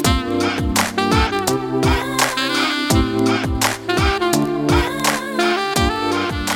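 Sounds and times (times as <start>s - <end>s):
saxophones playing: 0.1s - 6.5s.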